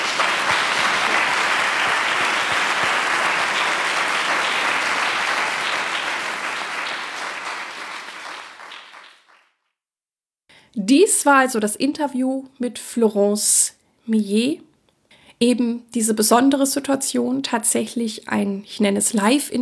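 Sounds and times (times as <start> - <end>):
audience applause: 0.0 - 9.4
speech: 10.9 - 14.7, 15.4 - 19.5.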